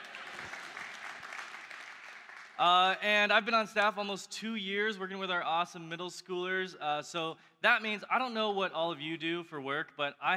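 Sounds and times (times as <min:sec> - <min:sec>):
audience cheering and applause: 0:00.0 - 0:02.7
speech: 0:02.6 - 0:10.3.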